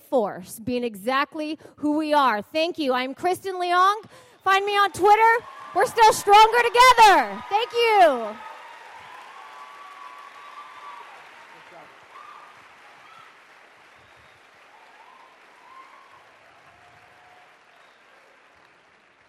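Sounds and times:
speech: 0.1s - 8.5s
audience applause: 4.6s - 19.2s.

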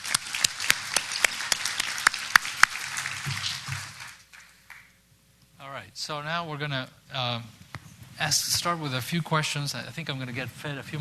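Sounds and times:
audience applauding: 0.0s - 5.0s
speech: 5.8s - 7.6s, 8.2s - 10.9s.

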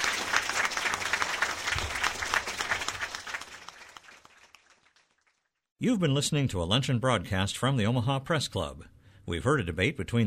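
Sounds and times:
audience applause: 0.0s - 5.5s
speech: 5.8s - 10.2s.

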